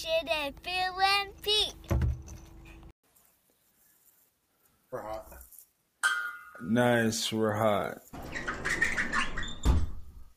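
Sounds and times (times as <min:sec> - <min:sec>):
speech: 0:00.0 - 0:01.8, 0:06.6 - 0:08.4
small door shutting with a sharp thud: 0:01.9 - 0:02.3, 0:08.2 - 0:10.2
small door creaking with a high squeak: 0:08.1 - 0:10.3.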